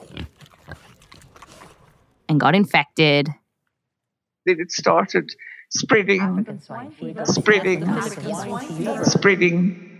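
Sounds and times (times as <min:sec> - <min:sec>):
pig grunting: 0:00.0 - 0:01.9
speech: 0:02.3 - 0:03.4, 0:04.4 - 0:09.9.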